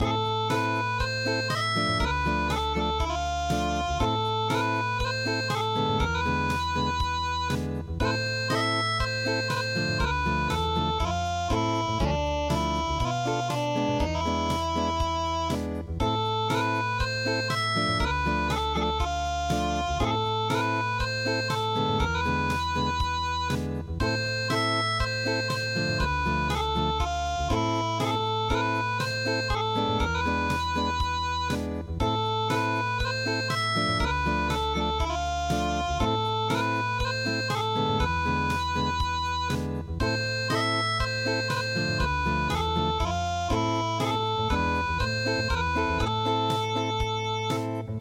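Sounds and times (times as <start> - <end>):
acoustic music: 0.0 - 47.9.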